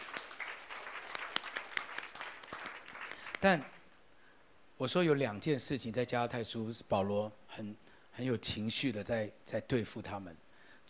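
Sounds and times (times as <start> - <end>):
crowd applauding: 0.0 - 3.9
sharp individual claps: 0.0 - 3.9
speech: 3.4 - 3.7, 4.8 - 10.8.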